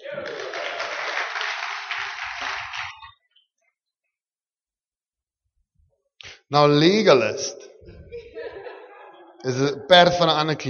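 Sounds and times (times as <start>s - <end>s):
laughter: 0.0s - 1.5s, 7.8s - 10.2s
audience applause: 0.0s - 3.2s
speech: 6.5s - 7.6s, 9.4s - 10.6s.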